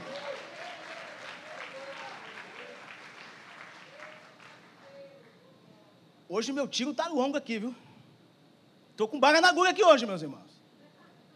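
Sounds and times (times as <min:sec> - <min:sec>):
audience applauding: 0:00.0 - 0:05.4
speech: 0:06.3 - 0:07.8, 0:09.0 - 0:10.4.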